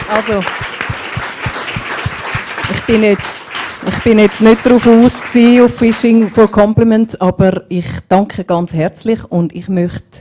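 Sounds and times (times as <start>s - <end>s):
audience applause after a talk: 0.0s - 6.6s
speech: 0.1s - 0.6s, 2.7s - 10.1s.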